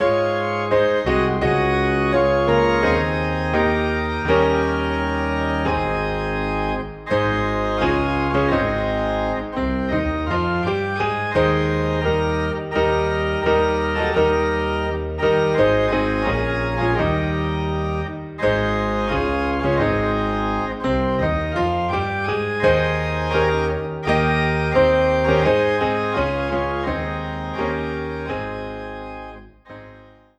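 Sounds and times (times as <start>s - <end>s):
organ in A flat: 0.0s - 30.3s
piano in A flat: 0.0s - 30.3s.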